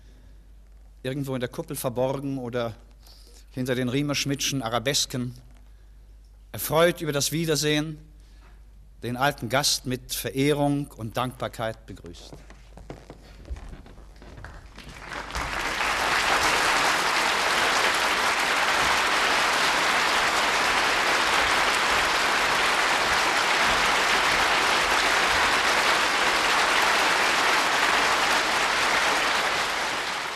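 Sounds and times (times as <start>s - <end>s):
speech: 1.0s - 5.5s, 6.5s - 8.1s, 9.0s - 12.6s
crowd applauding: 14.2s - 30.3s.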